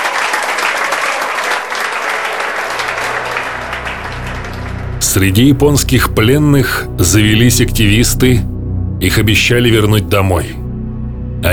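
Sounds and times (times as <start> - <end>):
audience applause: 0.0 - 5.9
speech: 5.2 - 10.6.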